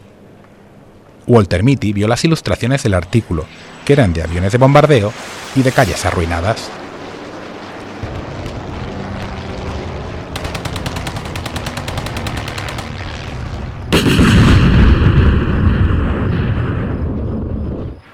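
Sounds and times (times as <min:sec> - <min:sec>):
speech: 0:01.3 - 0:06.8
artillery cannon fire barrage: 0:07.7 - 0:17.8
machine-gun bursts: 0:10.4 - 0:13.3.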